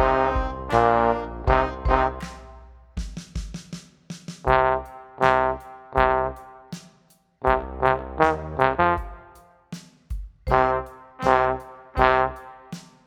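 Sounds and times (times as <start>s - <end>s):
loud trombone playing power rock playback: 0.0s - 2.8s, 4.4s - 6.8s, 7.4s - 9.5s, 10.5s - 13.0s.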